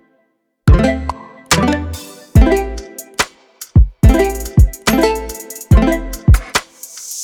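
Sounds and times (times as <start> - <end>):
music with bass: 0.7 - 3.0, 3.8 - 6.6.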